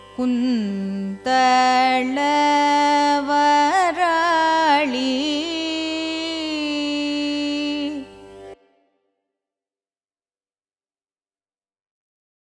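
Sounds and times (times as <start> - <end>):
carnatic music in a raga: 0.0 - 9.0.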